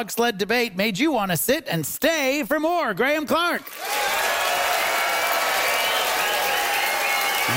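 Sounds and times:
speech: 0:00.0 - 0:04.4
audience applause: 0:03.7 - 0:07.5.

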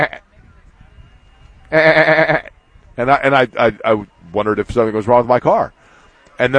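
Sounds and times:
sheep bleating in a trailer: 0:00.0 - 0:00.2, 0:01.7 - 0:02.5
speech: 0:01.7 - 0:02.1, 0:03.0 - 0:05.8, 0:06.4 - 0:06.5.

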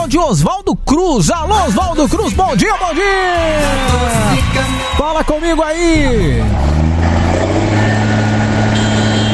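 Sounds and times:
speech: 0:00.1 - 0:06.7
car horns honking: 0:02.7 - 0:09.3.

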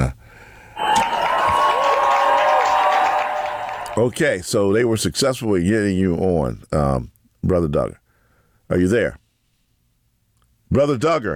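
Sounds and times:
audience applause: 0:00.8 - 0:04.1
speech: 0:04.0 - 0:08.0, 0:08.7 - 0:09.2, 0:10.7 - 0:11.3.

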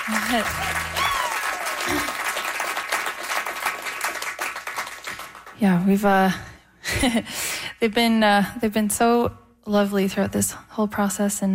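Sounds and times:
audience round of applause: 0:00.0 - 0:05.5
speech: 0:00.1 - 0:00.9, 0:05.6 - 0:11.5.

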